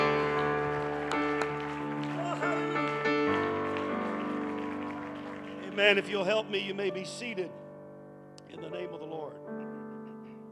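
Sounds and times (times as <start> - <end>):
audience clapping hands: 0.0 - 7.0
speech: 5.8 - 7.6, 8.5 - 9.3.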